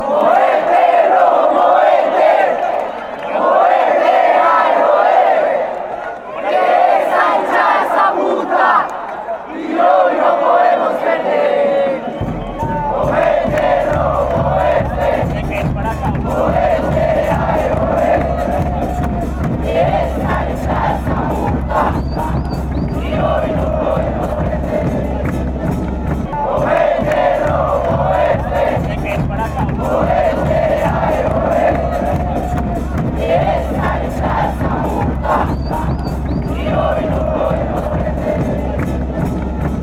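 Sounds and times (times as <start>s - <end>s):
chanting: 0.0s - 39.8s.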